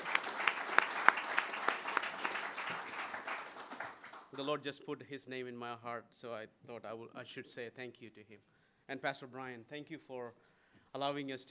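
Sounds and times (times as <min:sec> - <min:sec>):
audience applause: 0:00.0 - 0:04.4
speech: 0:04.4 - 0:11.5.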